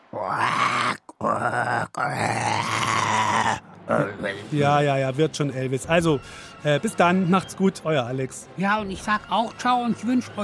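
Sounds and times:
speech: 0.1s - 3.0s, 3.9s - 10.4s
lion roaring: 0.1s - 3.6s.

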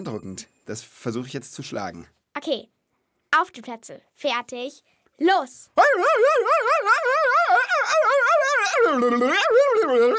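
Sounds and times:
speech: 0.0s - 10.1s
voice imitating dog barking: 5.8s - 10.1s.

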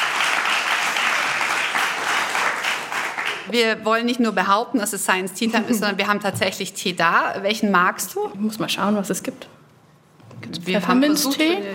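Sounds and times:
studio audience applause: 0.0s - 3.5s
speech: 3.5s - 9.6s, 10.6s - 11.7s.

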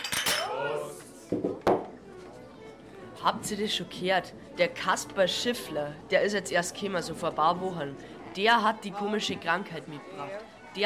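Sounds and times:
clinking cutlery and dishes in a tavern: 0.0s - 0.6s
low murmur of indistinct voices: 0.0s - 10.8s
speech: 3.2s - 10.8s.

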